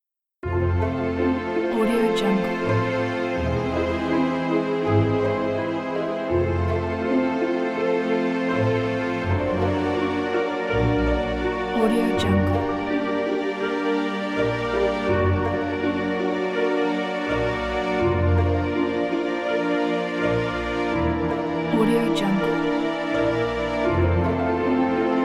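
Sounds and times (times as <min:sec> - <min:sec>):
cinematic opening music: 0:00.4 - 0:25.2.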